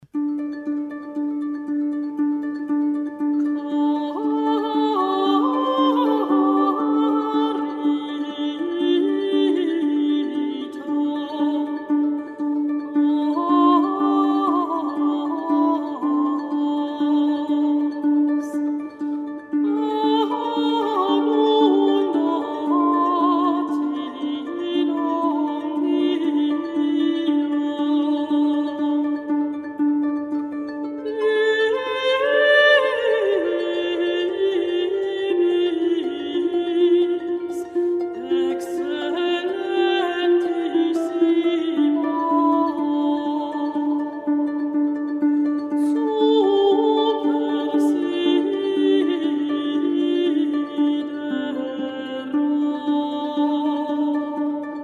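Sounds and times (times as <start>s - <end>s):
harp: 0.0s - 54.8s
mezzo-soprano singing: 0.4s - 54.8s.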